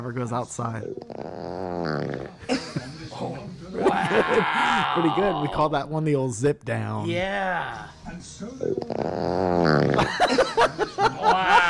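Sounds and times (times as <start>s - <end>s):
speech: 0.0s - 3.3s, 4.2s - 11.6s
bubbling fart: 1.0s - 2.4s, 8.8s - 10.1s
laughter: 2.5s - 5.2s, 10.0s - 11.6s.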